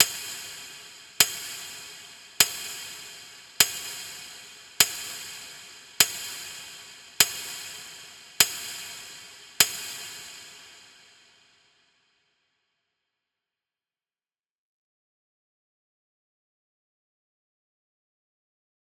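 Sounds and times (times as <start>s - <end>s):
clock ticking with multi reverb: 0.0s - 11.0s.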